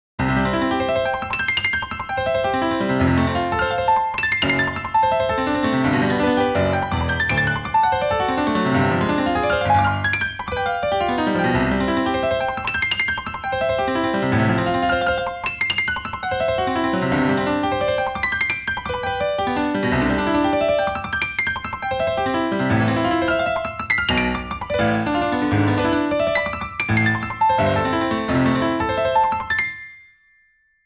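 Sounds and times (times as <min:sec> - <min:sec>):
transcribed classical piano piece with reverb: 0:00.2 - 0:30.0.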